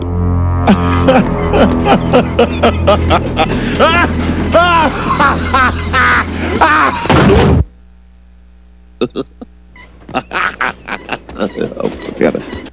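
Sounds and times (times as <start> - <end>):
person laughing: 0.7 - 7.1, 9.0 - 9.5, 10.1 - 12.4.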